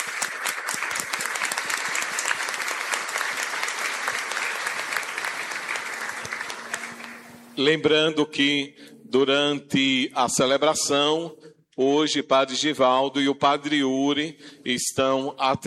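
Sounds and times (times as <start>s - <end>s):
warm applause: 0.0s - 7.7s
speech: 7.6s - 15.6s.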